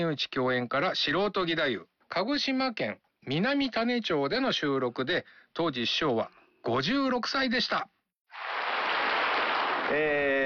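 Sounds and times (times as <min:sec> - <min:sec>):
speech: 0:00.0 - 0:08.0, 0:09.9 - 0:10.4
audience applause at an amateur gidayu performance in Minamitane Kagoshima: 0:08.4 - 0:10.4.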